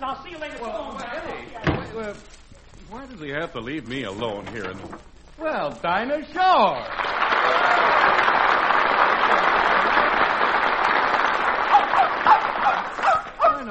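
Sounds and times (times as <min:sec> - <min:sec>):
speech: 0:00.1 - 0:01.3, 0:02.0 - 0:08.4
steady applause: 0:06.8 - 0:13.7
spaniel-terrier mix dog yipping and barking: 0:11.7 - 0:13.7.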